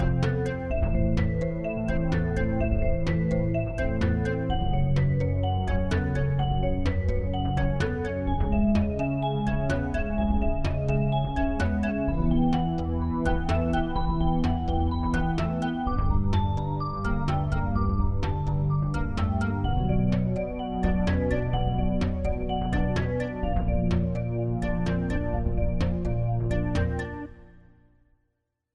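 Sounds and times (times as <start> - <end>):
General MIDI music from a synthesizer module: 0.0 - 27.7.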